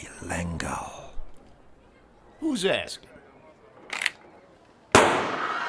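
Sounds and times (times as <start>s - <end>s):
speech: 0.2s - 0.9s, 2.4s - 3.2s
.38 pistol gunshot: 4.9s - 5.6s.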